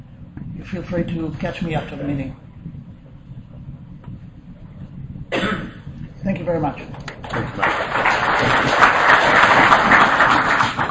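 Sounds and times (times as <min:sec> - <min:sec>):
speech: 0:00.6 - 0:02.8, 0:06.3 - 0:08.9
audience applause: 0:07.0 - 0:10.9.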